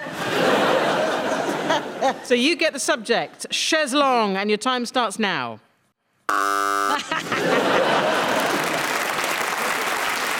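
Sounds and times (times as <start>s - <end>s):
audience laughter: 0.0s - 2.3s, 6.9s - 9.3s
speech: 2.1s - 5.7s, 6.3s - 7.1s
game-show buzzer: 6.3s - 7.1s
audience applause: 7.6s - 10.3s.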